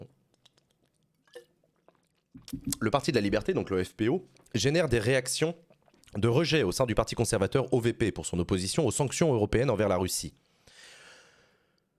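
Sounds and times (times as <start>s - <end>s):
drinking from a glass: 0.4s - 3.4s
speech: 2.5s - 10.5s.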